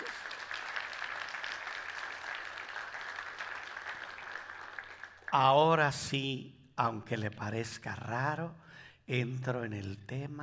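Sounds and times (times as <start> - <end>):
audience applause: 0.0 - 5.3
speech: 5.3 - 10.4.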